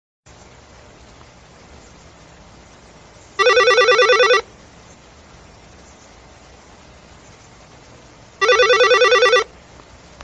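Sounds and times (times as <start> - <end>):
bell ringing: 3.4 - 4.4, 8.4 - 9.4.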